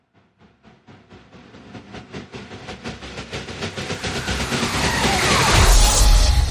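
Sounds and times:
engine revving up the tailpipe: 2.7s - 6.4s.

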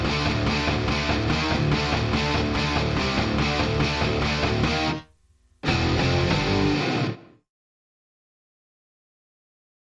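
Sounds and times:
guitars playing: 0.0s - 7.4s.

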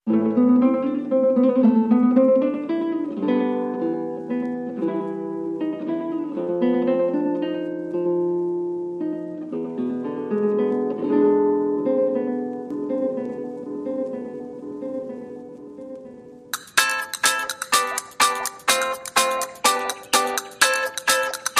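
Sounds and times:
instrumental music mix without sound effects or vocals: 0.0s - 21.5s.

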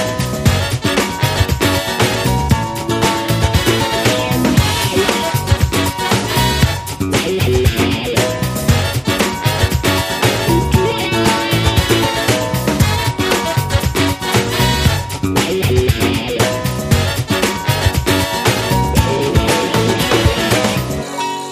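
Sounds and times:
music mix with breaks: 0.0s - 21.2s.

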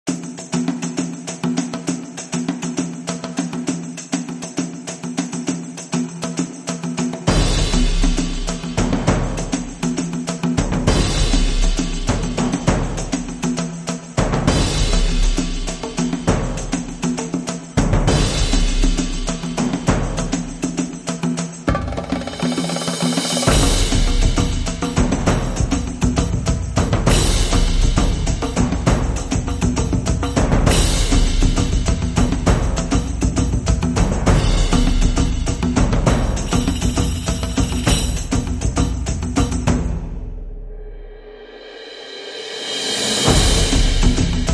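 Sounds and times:
epic adventure percussion: 0.0s - 44.5s.

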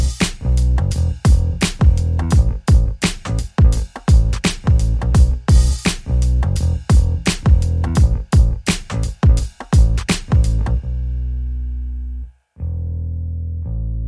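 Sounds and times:
drums: 0.0s - 10.9s
bass: 0.0s - 14.0s.

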